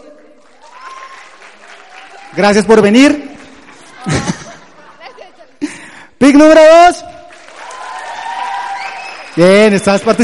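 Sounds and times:
crowd clapping: 0.0s - 4.8s, 7.0s - 10.2s
speech: 2.3s - 3.3s, 6.2s - 7.1s, 9.4s - 10.2s
laughter: 3.8s - 6.0s.

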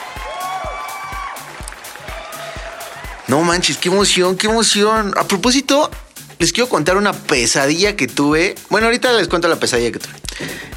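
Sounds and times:
applause: 0.0s - 3.9s
speech: 3.3s - 10.7s.

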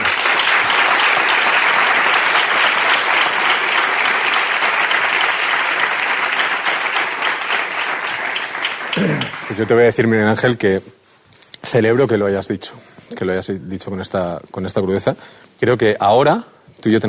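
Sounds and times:
audience applause: 0.0s - 10.4s
speech: 9.6s - 11.0s, 11.7s - 17.0s.

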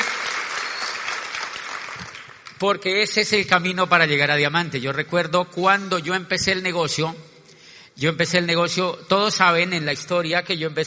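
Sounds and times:
audience applause: 0.0s - 2.5s
speech: 2.6s - 7.3s, 8.0s - 10.8s.

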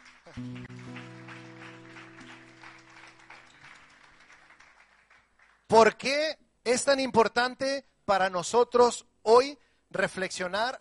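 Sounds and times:
audience applause: 0.0s - 5.7s
speech: 0.4s - 0.8s, 5.8s - 10.8s.

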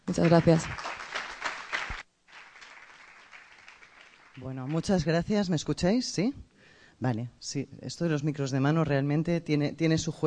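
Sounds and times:
applause: 0.0s - 5.3s
speech: 0.1s - 0.8s, 4.4s - 10.2s.

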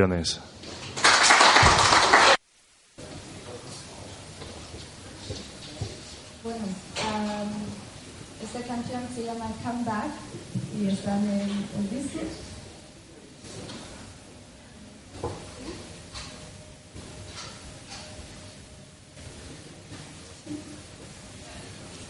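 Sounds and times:
speech: 0.0s - 0.6s, 8.8s - 12.5s
audience applause: 0.8s - 2.4s.

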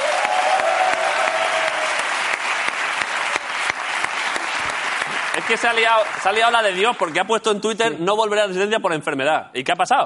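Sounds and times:
applause: 0.0s - 7.6s
speech: 5.5s - 10.0s.

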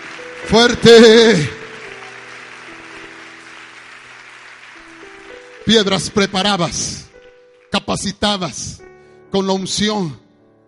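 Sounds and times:
audience applause: 0.0s - 6.9s
speech: 0.4s - 1.6s, 5.7s - 7.1s, 7.8s - 10.2s.

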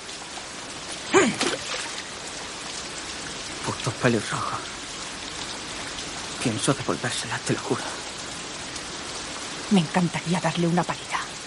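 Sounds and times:
stone hurled angrily into water: 1.2s - 2.1s
speech: 3.7s - 4.8s, 6.4s - 8.0s, 9.7s - 11.2s.

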